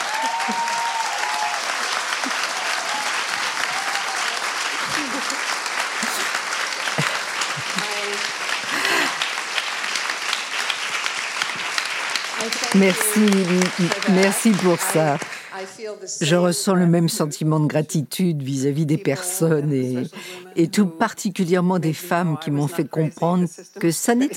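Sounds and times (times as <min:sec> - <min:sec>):
laughter: 0:00.0 - 0:01.1, 0:02.0 - 0:09.6
audience applause: 0:00.0 - 0:15.8
speech: 0:12.7 - 0:24.3.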